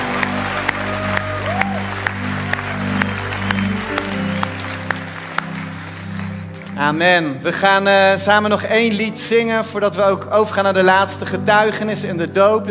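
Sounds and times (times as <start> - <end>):
audience applause: 0.0 - 6.8
speech: 6.8 - 12.6.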